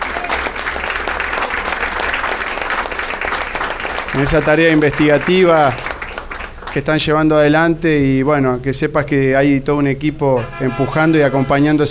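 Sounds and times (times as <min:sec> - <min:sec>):
audience applause: 0:00.0 - 0:07.2
speech: 0:04.2 - 0:05.8, 0:06.8 - 0:11.8.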